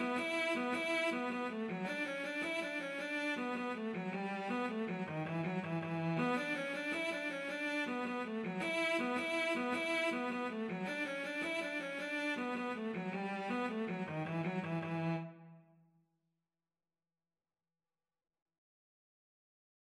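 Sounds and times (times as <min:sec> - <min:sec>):
cello playing a jig: 0:00.0 - 0:15.5.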